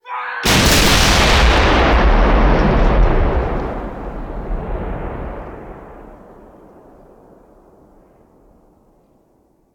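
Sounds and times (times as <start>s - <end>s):
artillery cannon firing: 0.4s - 7.7s.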